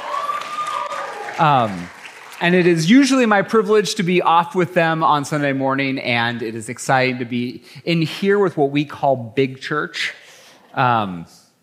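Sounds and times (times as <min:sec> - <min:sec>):
audience cheering and applause: 0:00.0 - 0:03.3
speech: 0:01.4 - 0:10.2, 0:10.8 - 0:11.4.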